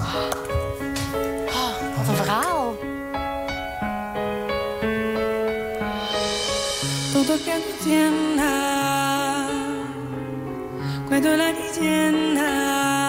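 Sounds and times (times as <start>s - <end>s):
steady piano notes: 0.0s - 13.0s
female singer-pianist singing with vibrato: 7.1s - 10.2s, 11.1s - 13.0s.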